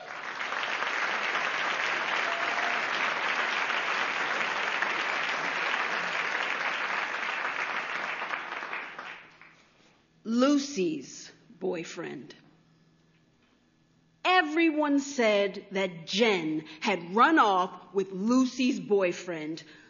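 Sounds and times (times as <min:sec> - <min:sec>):
audience applause welcoming a performer to the stage: 0:00.0 - 0:09.6
speech: 0:10.3 - 0:12.4, 0:14.6 - 0:19.8.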